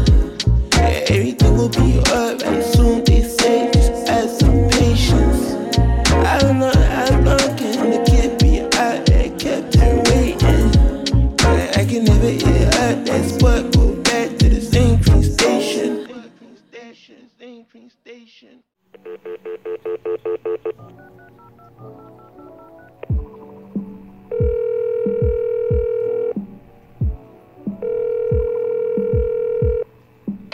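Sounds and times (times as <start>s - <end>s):
low rhythmic thumps: 0.0s - 15.5s, 23.1s - 30.5s
telephone dialing beeps: 19.0s - 23.6s, 27.8s - 29.9s
telephone ringing tone: 19.0s - 23.7s, 24.3s - 26.4s, 27.8s - 29.9s.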